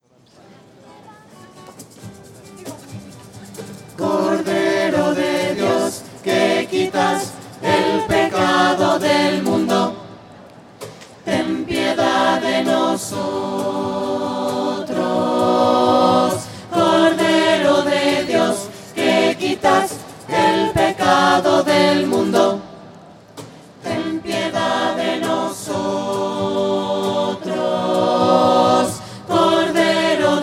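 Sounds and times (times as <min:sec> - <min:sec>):
voices singing: 0:03.3 - 0:30.4.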